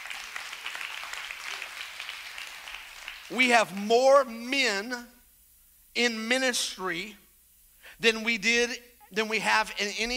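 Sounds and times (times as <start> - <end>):
crowd applauding: 0.0 - 3.4
speech: 3.3 - 5.1, 6.0 - 7.2, 8.0 - 10.1.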